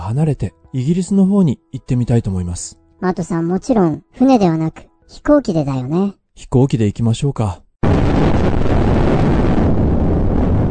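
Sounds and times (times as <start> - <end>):
speech: 0.1 - 8.7
rocket launch: 7.8 - 10.6.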